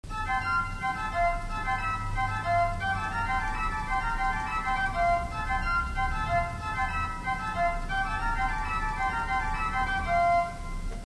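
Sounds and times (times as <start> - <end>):
pipe organ Great Fourniture III stop: 0.1 - 11.0.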